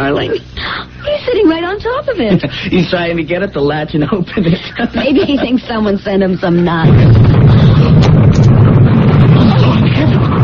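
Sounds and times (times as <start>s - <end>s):
speech: 0.0s - 8.4s
laughter: 4.3s - 5.7s
mailbox exploding in a radio drama: 6.8s - 10.4s.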